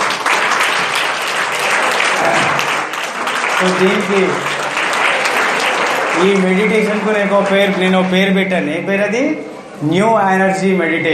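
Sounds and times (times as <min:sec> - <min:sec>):
audience clapping after a meditation session: 0:00.0 - 0:09.2
speech: 0:03.6 - 0:04.6, 0:06.2 - 0:11.1.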